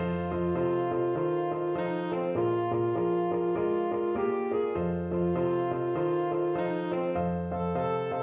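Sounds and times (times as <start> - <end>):
tenor saxophone: 0.1 - 8.2.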